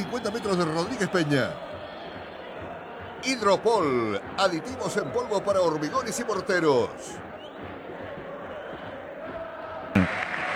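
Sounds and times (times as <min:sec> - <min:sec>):
stadium crowd applauding departing footballer: 0:00.0 - 0:10.5
speech: 0:00.1 - 0:01.7, 0:03.2 - 0:07.3.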